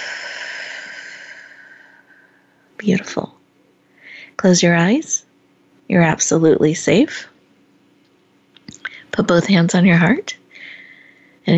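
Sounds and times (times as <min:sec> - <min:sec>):
deep breath in through the nose and out through the mouth: 0:00.0 - 0:02.7, 0:10.5 - 0:11.4
speech: 0:02.8 - 0:03.4, 0:04.4 - 0:05.2, 0:05.9 - 0:07.3, 0:09.1 - 0:10.4.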